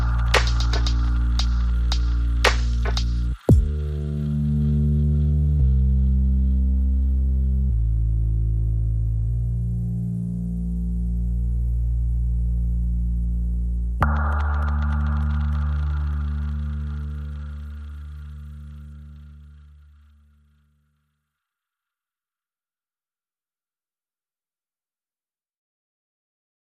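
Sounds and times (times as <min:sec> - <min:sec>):
drums: 0:00.0 - 0:03.8
bass: 0:00.0 - 0:21.2.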